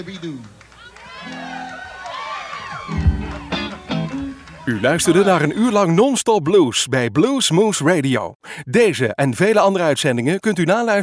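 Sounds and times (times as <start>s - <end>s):
speech: 0.0s - 0.6s, 4.7s - 11.0s
clapping: 0.0s - 5.3s
audience cheering and whooping: 0.7s - 5.6s
people shouting: 0.8s - 5.6s.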